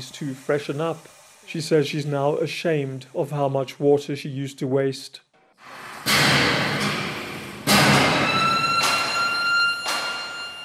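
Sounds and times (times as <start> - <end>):
speech: 0.0 - 6.4
hammers pounding steel in a factory: 5.7 - 10.6.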